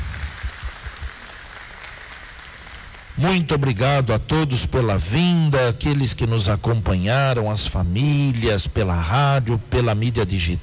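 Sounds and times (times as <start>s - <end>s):
audience applauding: 0.0s - 3.3s
speech: 3.2s - 10.6s.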